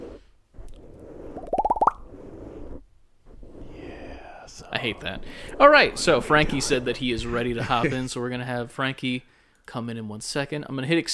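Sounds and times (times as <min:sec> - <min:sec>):
wet bubbly plops for ASMR: 0:01.4 - 0:02.0
speech: 0:04.6 - 0:11.1.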